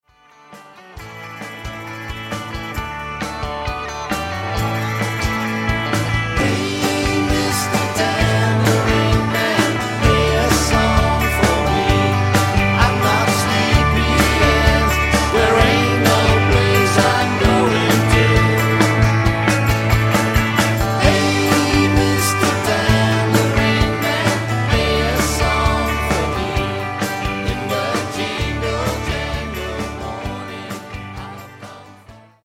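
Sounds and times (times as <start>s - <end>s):
tambourine: 4.0s - 32.1s.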